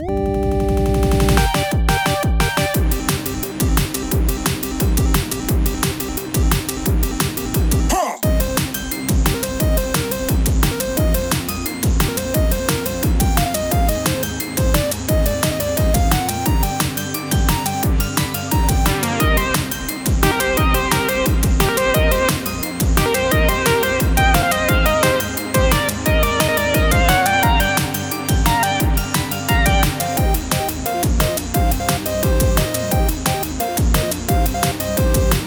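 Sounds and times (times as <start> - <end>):
drum and bass music: 0.0 - 35.4.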